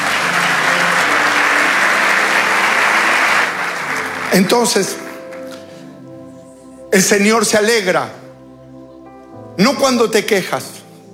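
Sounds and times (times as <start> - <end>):
audience applause: 0.0 - 6.2
speech: 4.3 - 5.0, 7.0 - 8.2, 9.6 - 10.8.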